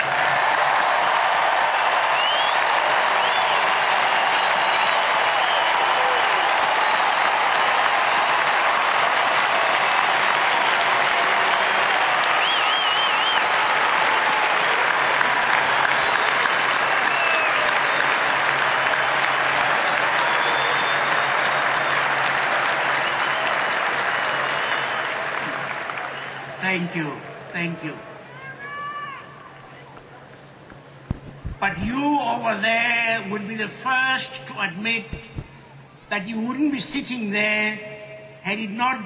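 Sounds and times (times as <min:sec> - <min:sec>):
rousing audience applause: 0:00.0 - 0:26.6
speech: 0:26.9 - 0:28.1, 0:31.8 - 0:35.4, 0:36.1 - 0:39.0.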